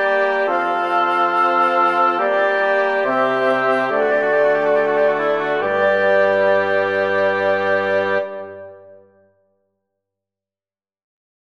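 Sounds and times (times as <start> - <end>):
woodwind quartet playing: 0.0 - 9.0.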